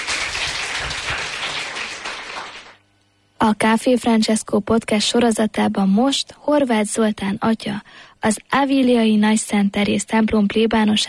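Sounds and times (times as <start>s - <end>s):
big round of applause: 0.0s - 2.8s
speech: 3.5s - 11.0s.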